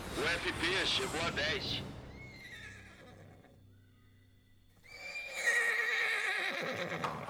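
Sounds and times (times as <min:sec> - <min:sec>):
speech: 0:00.3 - 0:01.9
agitated mare in a stable whinnying shrilly: 0:02.2 - 0:03.6, 0:04.8 - 0:07.2
mare in a stable snorting: 0:04.9 - 0:07.2.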